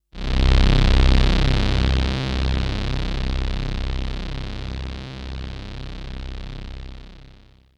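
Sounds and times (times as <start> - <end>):
synth: 0.2 - 7.6.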